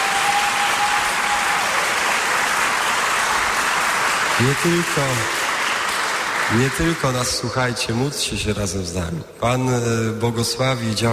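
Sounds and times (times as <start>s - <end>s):
audience applause: 0.0s - 8.0s
speech: 4.4s - 5.4s, 6.5s - 11.1s.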